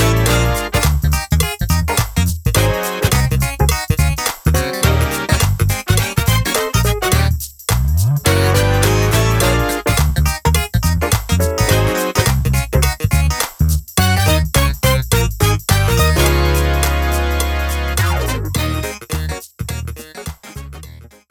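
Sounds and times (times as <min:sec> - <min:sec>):
drumless music track: 0:00.0 - 0:21.2.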